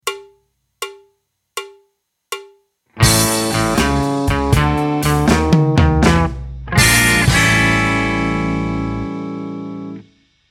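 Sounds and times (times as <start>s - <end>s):
blues music: 2.9s - 10.1s.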